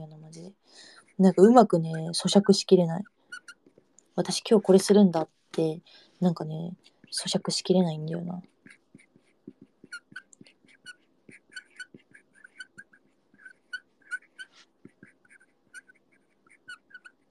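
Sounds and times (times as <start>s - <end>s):
speech: 0.3s - 3.2s, 4.2s - 8.5s
pen squeaking while writing: 1.3s - 3.8s, 8.5s - 17.2s.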